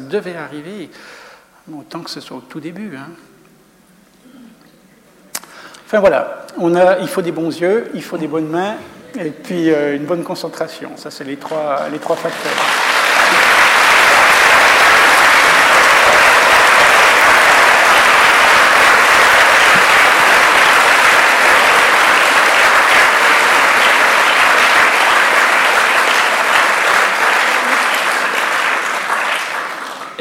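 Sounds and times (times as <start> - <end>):
speech: 0.1 - 3.3, 5.9 - 12.9
audience applause: 11.8 - 30.1.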